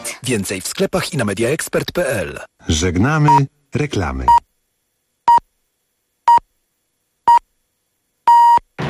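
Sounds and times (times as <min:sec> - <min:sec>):
speech: 0:00.2 - 0:04.4
hourly time signal beeps on Polish Radio's Program Three: 0:08.3 - 0:08.7.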